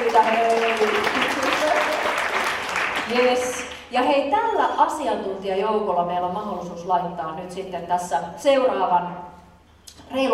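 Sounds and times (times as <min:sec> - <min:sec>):
audience applause: 0:00.0 - 0:03.8
speech: 0:04.0 - 0:09.4, 0:10.1 - 0:10.3.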